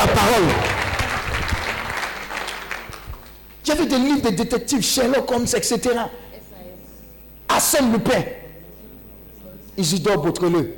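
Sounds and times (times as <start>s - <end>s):
congregation applause acclaiming the Lord during a church gathering: 0.0s - 3.6s
speech: 3.8s - 6.3s, 7.6s - 8.4s, 9.8s - 10.7s.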